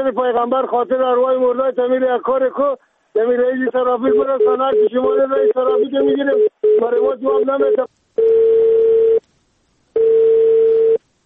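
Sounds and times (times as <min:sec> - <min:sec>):
speech: 0:00.0 - 0:08.4
telephone tone after call disconnected: 0:04.1 - 0:09.2, 0:10.0 - 0:11.0.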